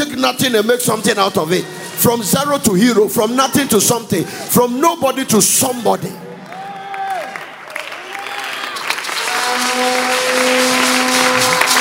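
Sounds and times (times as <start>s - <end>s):
speech: 0.2s - 6.3s
audience clapping and cheering: 6.2s - 11.7s.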